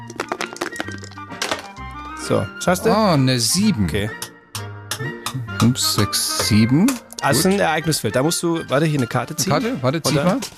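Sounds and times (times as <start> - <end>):
two dice clattering across a game board: 0.0 - 1.8
speech: 2.3 - 4.2, 5.4 - 10.5.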